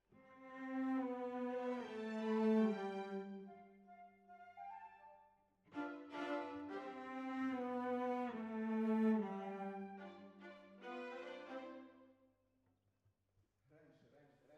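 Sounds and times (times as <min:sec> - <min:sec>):
cellos playing: 0:00.2 - 0:04.0, 0:05.7 - 0:12.0.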